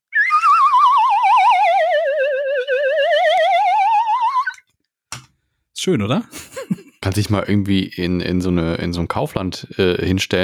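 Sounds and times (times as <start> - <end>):
lotus flute slide whistle playing: 0.0 - 4.6
speech: 5.8 - 6.5, 7.1 - 10.4
laughter: 6.3 - 7.0.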